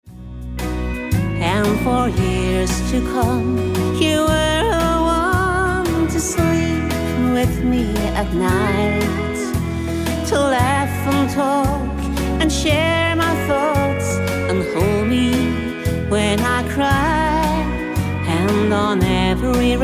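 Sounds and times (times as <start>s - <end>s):
country parlor music: 0.0s - 19.8s.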